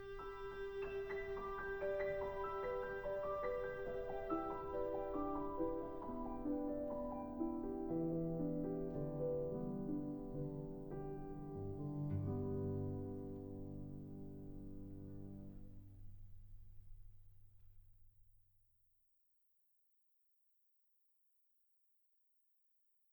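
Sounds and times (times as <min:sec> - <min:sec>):
cello arrangement: 0:00.0 - 0:15.8.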